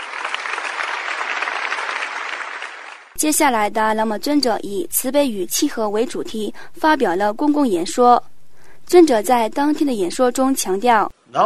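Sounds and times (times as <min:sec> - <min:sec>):
large audience applause: 0:00.0 - 0:03.2
speech: 0:03.2 - 0:08.3, 0:08.9 - 0:11.4.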